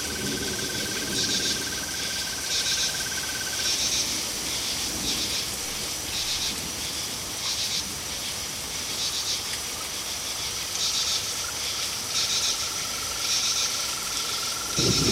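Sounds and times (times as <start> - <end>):
storm: 0.0 - 6.8, 14.6 - 15.1
crickets chirping: 0.0 - 15.1.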